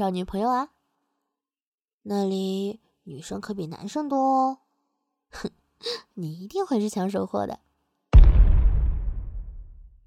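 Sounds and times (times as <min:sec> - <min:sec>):
speech: 0:00.0 - 0:00.8, 0:02.0 - 0:04.6, 0:05.3 - 0:07.6
planted bomb exploding when stepped on: 0:08.2 - 0:10.0.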